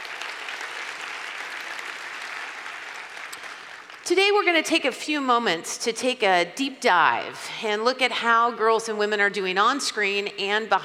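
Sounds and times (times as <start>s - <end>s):
audience applause: 0.0s - 4.0s
speech: 4.1s - 10.8s.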